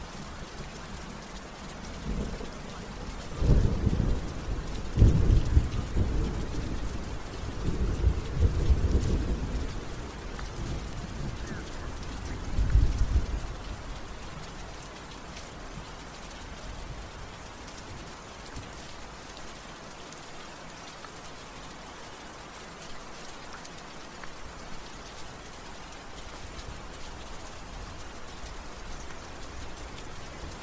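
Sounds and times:
steady rain in a night city: 0.0s - 30.6s.

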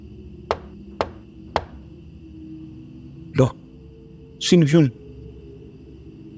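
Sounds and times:
heavy thud: 0.5s - 1.9s
knocking on a bedroom door: 0.5s - 1.9s
speech: 3.4s - 3.6s, 4.4s - 5.0s.

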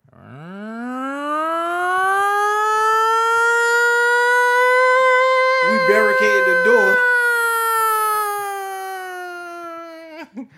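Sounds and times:
purge warning siren horn wailing: 0.3s - 8.0s.

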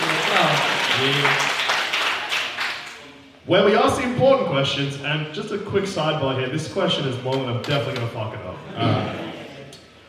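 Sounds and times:
live audience applause: 0.0s - 3.0s
speech: 0.4s - 1.5s, 3.5s - 9.2s.

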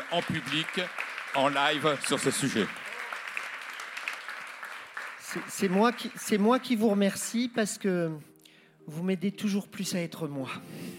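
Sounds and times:
audience applause: 0.0s - 6.8s
speech: 0.1s - 2.8s, 5.3s - 8.3s, 8.9s - 10.9s.

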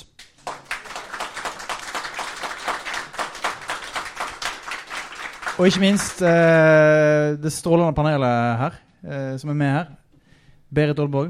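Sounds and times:
audience applause: 0.2s - 6.8s
speech: 5.6s - 10.0s, 10.7s - 11.2s.

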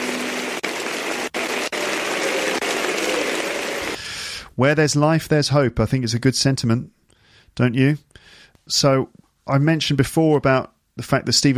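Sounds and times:
audience applauding in a standing ovation: 0.0s - 4.0s
speech: 4.6s - 7.0s, 7.6s - 11.5s.

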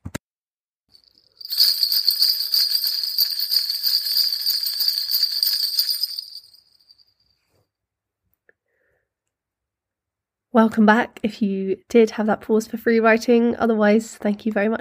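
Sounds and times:
bright high-pitched bells ringing: 0.9s - 7.1s
speech: 10.6s - 14.7s.

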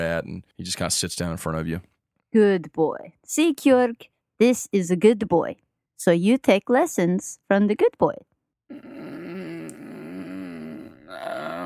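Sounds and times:
speech: 0.0s - 9.0s
person imitating a growl: 8.7s - 11.6s.

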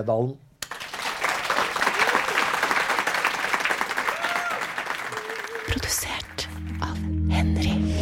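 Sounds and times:
speech: 0.0s - 0.4s, 5.7s - 7.9s
crowd applause: 0.6s - 6.7s
faint whistles and cheers: 3.9s - 5.7s.

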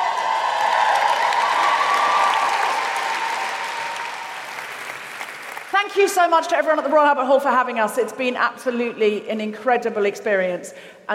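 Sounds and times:
audience cheering and applause: 0.0s - 5.7s
speech: 5.8s - 11.1s.

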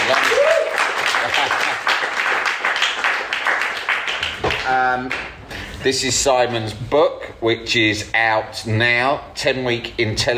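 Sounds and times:
crowd applauding a fitness author at a live event: 0.0s - 5.5s
speech: 4.9s - 10.3s.

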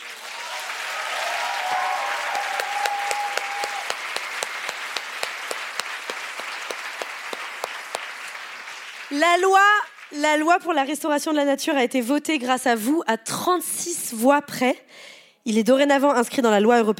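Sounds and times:
audience applause: 0.0s - 10.2s
whistle or cheer: 0.4s - 4.0s
speech: 9.1s - 16.9s.

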